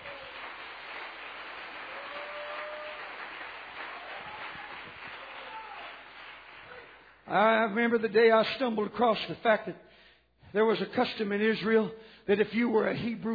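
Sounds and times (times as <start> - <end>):
audience clapping hands: 0.0 - 7.3
speech: 7.3 - 13.3.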